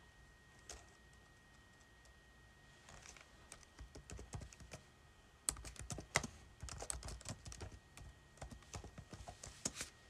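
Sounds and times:
typing on a keyboard: 0.6 - 2.2, 2.9 - 4.8, 5.5 - 9.8.

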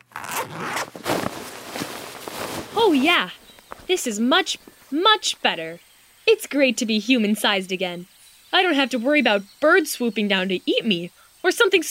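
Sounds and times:
book bag zipper opening: 0.0 - 1.5
speech: 2.8 - 11.8.

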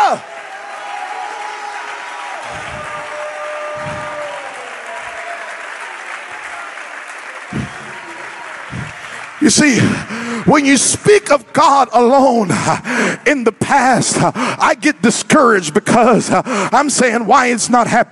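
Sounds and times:
audience shouting: 0.0 - 9.8
audience clapping: 0.0 - 10.9
speech: 0.1 - 0.4, 9.5 - 18.1.

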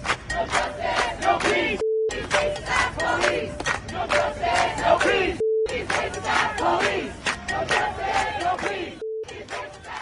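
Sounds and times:
protest crowd chanting: 0.3 - 10.0
censor beeps: 1.8 - 2.2, 5.4 - 5.8, 9.0 - 9.4.

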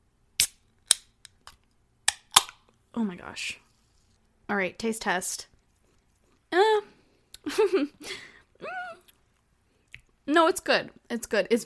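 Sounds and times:
seltzer water can being cracked open: 0.4 - 2.7
speech: 3.0 - 3.6, 4.5 - 5.5, 6.5 - 8.8, 10.3 - 11.6.

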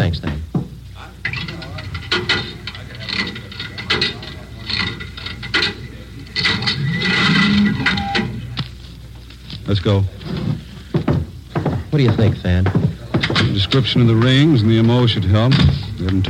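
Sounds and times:
coin-operated cigarette vending machine dispensing: 1.0 - 8.8, 11.1 - 16.2
speech: 9.7 - 10.6, 11.9 - 12.9, 13.5 - 16.2.

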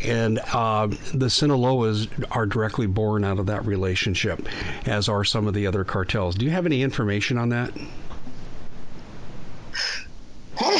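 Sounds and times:
speech: 0.0 - 8.0
low steady hum: 0.0 - 10.7
sneeze: 9.8 - 10.7.

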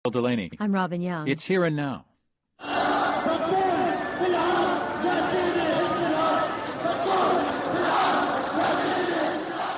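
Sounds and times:
speech: 0.0 - 3.6
protesting crowd shouting: 2.6 - 9.7.

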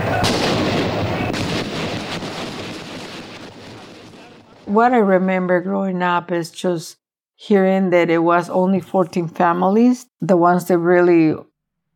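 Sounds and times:
police gunshots at the cathedral steps massacre in San Salvador: 0.0 - 4.8
speech: 4.7 - 11.5.

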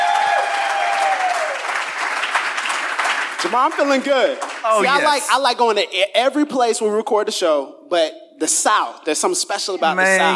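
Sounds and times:
crowd clapping and cheering: 0.0 - 5.4
speech: 3.4 - 10.3.

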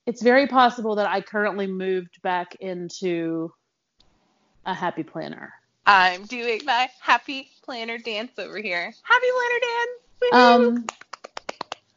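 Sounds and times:
speech: 0.1 - 3.6, 4.6 - 11.0
single hand clap: 10.7 - 11.9.

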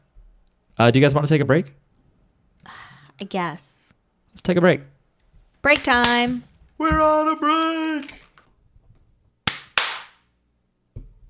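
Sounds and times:
speech: 0.8 - 1.8, 2.6 - 3.8, 4.4 - 4.9, 5.6 - 8.2
sharp loud hand claps: 9.4 - 10.3.

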